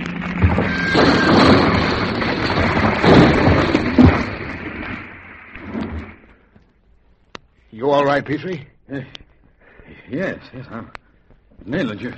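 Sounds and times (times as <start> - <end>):
boulder crashing down a cliff: 0.0 - 6.3
sharp thuds: 0.2 - 6.3
speech: 8.1 - 9.2, 9.9 - 11.0, 11.6 - 12.1.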